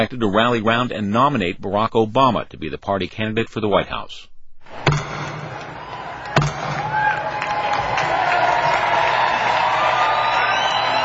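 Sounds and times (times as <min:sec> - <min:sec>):
speech: 0:00.0 - 0:05.1
gavel opening the Democratic National Convention in Denver: 0:04.7 - 0:07.5
crowd roaring: 0:04.7 - 0:11.0.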